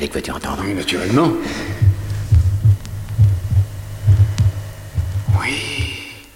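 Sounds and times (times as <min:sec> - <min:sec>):
speech: 0:00.0 - 0:01.9
faint hum: 0:00.0 - 0:06.3
heartbeat at the left chest fifth intercostal space with mitral valves closing: 0:01.2 - 0:06.1.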